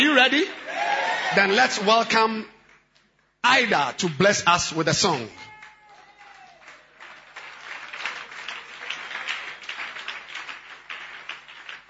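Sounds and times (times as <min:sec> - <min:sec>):
speech: 0:00.0 - 0:02.5, 0:03.4 - 0:05.4
audience clapping: 0:00.6 - 0:04.2, 0:05.1 - 0:11.8.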